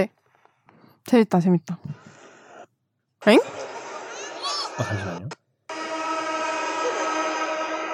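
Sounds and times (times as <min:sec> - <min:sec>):
speech: 0:01.0 - 0:02.2, 0:03.2 - 0:03.7, 0:04.8 - 0:05.4
laughter: 0:03.4 - 0:05.3
vuvuzela horn blast: 0:05.7 - 0:07.9.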